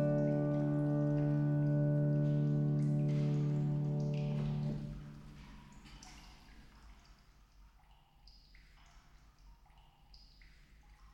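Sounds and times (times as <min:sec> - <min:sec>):
piano improvisation: 0:00.0 - 0:05.6.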